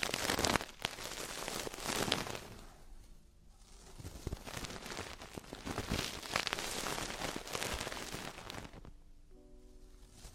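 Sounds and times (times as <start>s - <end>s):
traditional Chinese ear cleaning scrapes: 0.0s - 2.6s, 3.6s - 8.9s.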